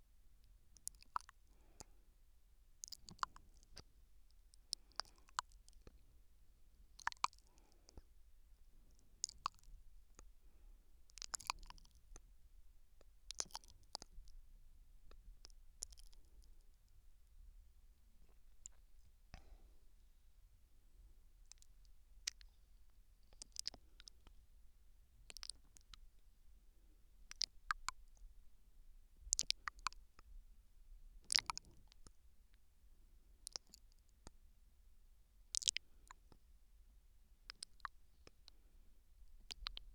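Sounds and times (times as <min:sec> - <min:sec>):
gentle nibbling on the left ear: 0:00.4 - 0:02.0, 0:02.8 - 0:06.2, 0:06.8 - 0:14.4, 0:15.0 - 0:17.4, 0:18.1 - 0:20.0, 0:21.3 - 0:26.3, 0:27.3 - 0:28.3, 0:29.3 - 0:30.3, 0:31.2 - 0:32.7, 0:33.4 - 0:34.4, 0:35.5 - 0:36.5, 0:37.5 - 0:39.9.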